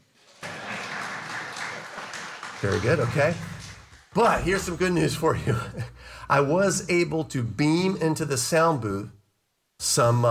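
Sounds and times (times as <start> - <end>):
audience applauding: 0.2 - 4.9
laughter: 0.3 - 6.0
speech: 2.6 - 3.5, 4.2 - 9.2, 9.8 - 10.2.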